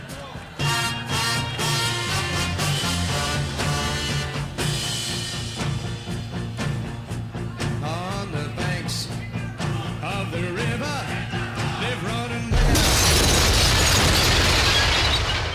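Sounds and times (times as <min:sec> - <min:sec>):
music with singing from a record player: 0:00.0 - 0:12.8
record player exploding with a loud crash: 0:12.5 - 0:15.5.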